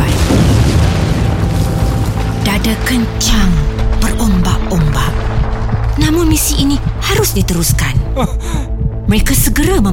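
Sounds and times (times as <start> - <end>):
explosion: 0.0 - 7.7
speech: 2.7 - 4.8, 6.1 - 9.9.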